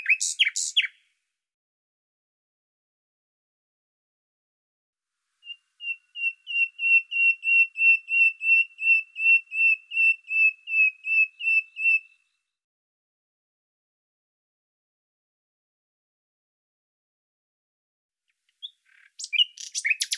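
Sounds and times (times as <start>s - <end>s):
bird song: 0.0s - 1.2s, 5.4s - 12.6s, 18.3s - 20.1s.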